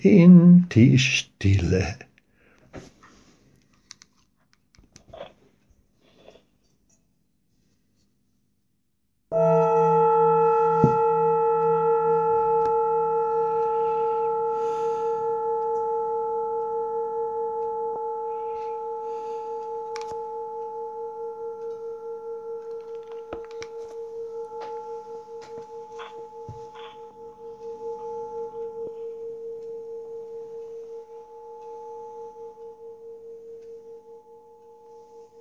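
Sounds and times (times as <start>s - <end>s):
speech: 0.0s - 2.1s
singing bowl struck and ringing: 9.3s - 35.3s.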